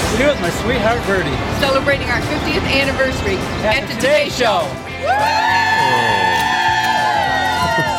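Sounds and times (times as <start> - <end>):
speech: 0.2 - 6.1
crowd cheering on outdoor plaza: 4.9 - 7.9.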